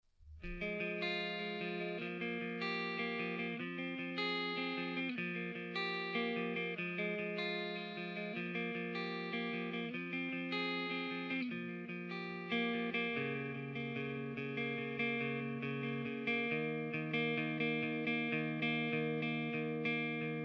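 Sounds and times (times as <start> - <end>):
guitar: 0.2 - 20.4.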